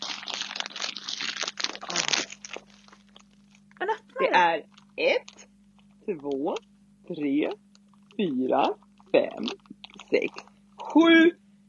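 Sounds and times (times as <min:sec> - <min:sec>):
wrapped gift package crinkling and rustling while handled: 0:00.0 - 0:03.8, 0:04.7 - 0:06.4, 0:07.7 - 0:10.8
speech: 0:04.2 - 0:05.4, 0:06.1 - 0:07.6, 0:08.2 - 0:11.4.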